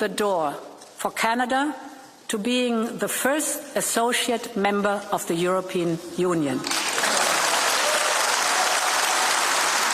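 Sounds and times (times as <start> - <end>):
speech: 0.0 - 6.9
audience applause after a speech announcement: 6.7 - 9.9.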